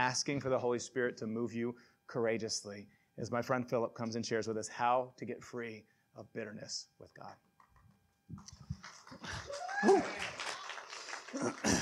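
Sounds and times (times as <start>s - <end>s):
speech: 0.1s - 7.5s, 8.3s - 10.4s, 11.3s - 11.8s
audience applauding and cheering: 8.4s - 11.8s
person whooping: 9.2s - 11.8s.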